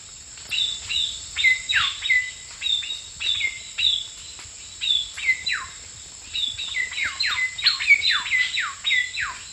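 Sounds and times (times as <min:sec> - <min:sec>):
Ecuadorian cacique calling in the eastern lowlands of South America: 0:00.5 - 0:04.1, 0:04.8 - 0:09.5.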